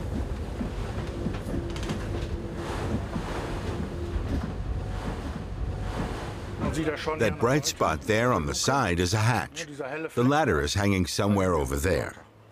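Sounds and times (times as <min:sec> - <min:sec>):
boat speeding into ocean waves: 0:00.0 - 0:09.2
speech: 0:06.8 - 0:12.2.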